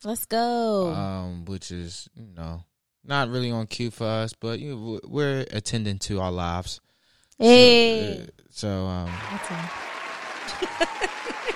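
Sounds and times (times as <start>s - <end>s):
speech: 0.0s - 11.5s
laughter: 0.8s - 1.3s, 8.0s - 11.5s
long clapping: 9.1s - 11.5s.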